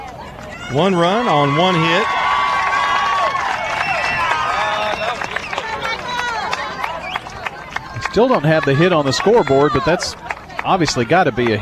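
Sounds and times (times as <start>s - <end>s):
excited crowd cheering at a high school baseball game at Siegel High School: 0.0s - 11.6s
speech: 0.7s - 2.2s, 8.2s - 11.6s
whoops and whistles: 3.7s - 5.6s.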